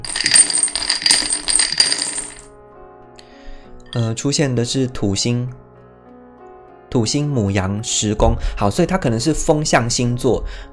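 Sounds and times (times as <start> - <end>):
dice being rolled: 0.0 - 2.4
speech: 3.9 - 5.7, 7.0 - 10.7.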